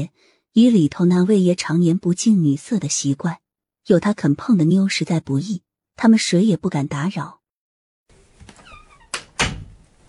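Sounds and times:
speech: 0.0s - 7.4s
door squeak: 8.4s - 9.8s
door thuds shut: 9.1s - 9.8s.

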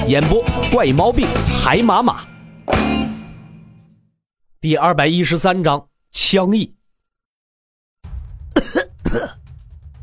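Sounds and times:
speech: 0.0s - 2.3s, 4.6s - 6.8s
coughing: 8.6s - 9.4s.

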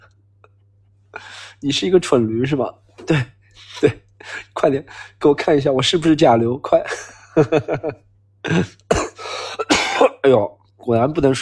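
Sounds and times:
speech: 1.2s - 8.8s, 10.2s - 11.4s
coughing: 6.9s - 10.4s.

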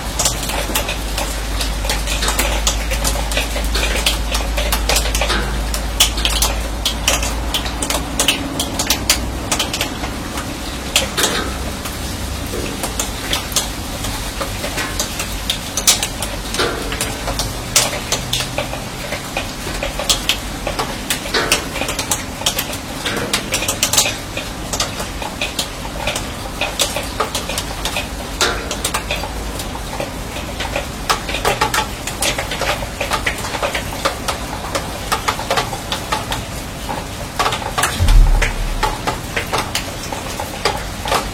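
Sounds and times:
rain dripping onto a steel roof: 0.0s - 41.3s
loud knock: 38.0s - 39.6s
low rumble: 38.0s - 39.6s.

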